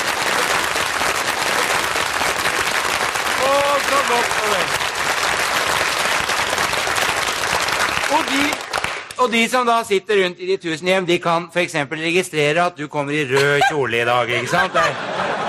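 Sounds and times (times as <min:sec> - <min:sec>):
crowd applause: 0:00.0 - 0:09.2
speech: 0:04.0 - 0:04.8, 0:08.1 - 0:08.6, 0:09.2 - 0:15.2
laughter: 0:13.2 - 0:15.4.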